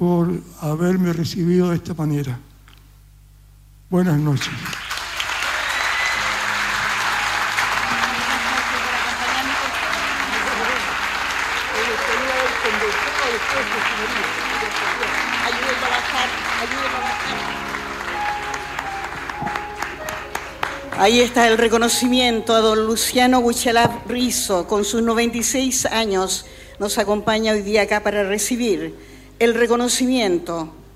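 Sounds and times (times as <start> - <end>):
speech: 0.0 - 2.5, 3.9 - 4.8, 21.0 - 30.8
audience applause: 4.5 - 22.1.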